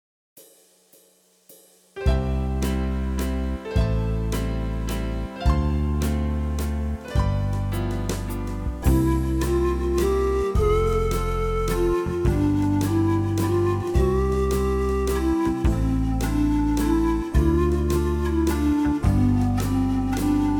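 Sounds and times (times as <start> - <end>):
keyboard: 2.0 - 20.5.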